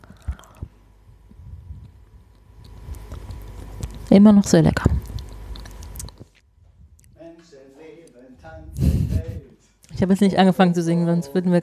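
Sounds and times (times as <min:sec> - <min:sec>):
chewing a piece of chocolate: 0:00.0 - 0:00.7, 0:02.3 - 0:04.1, 0:04.9 - 0:07.2
speech: 0:04.1 - 0:05.0, 0:10.0 - 0:11.6.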